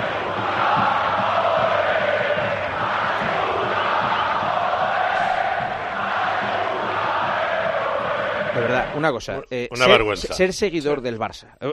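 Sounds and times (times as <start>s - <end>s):
football fans chanting in a stadium: 0.0s - 9.2s
speech: 9.0s - 11.7s.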